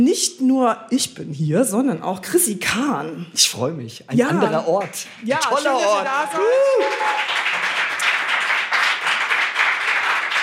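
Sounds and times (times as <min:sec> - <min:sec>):
speech: 0:00.0 - 0:07.4
applause: 0:04.5 - 0:10.4.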